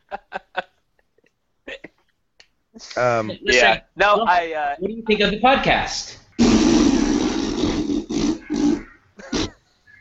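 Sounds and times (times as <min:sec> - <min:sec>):
speech: 0:02.9 - 0:06.2
person blowing raspberries: 0:06.4 - 0:09.6.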